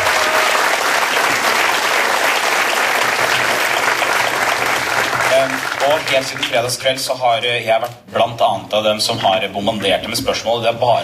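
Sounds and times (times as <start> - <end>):
audience applause: 0.0 - 6.8
speech: 5.4 - 11.0.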